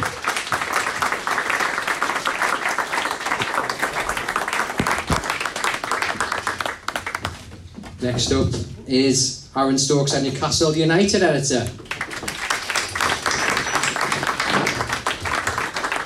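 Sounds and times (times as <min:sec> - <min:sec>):
live audience applause: 0:00.0 - 0:07.5, 0:11.8 - 0:16.0
speech: 0:08.0 - 0:11.8.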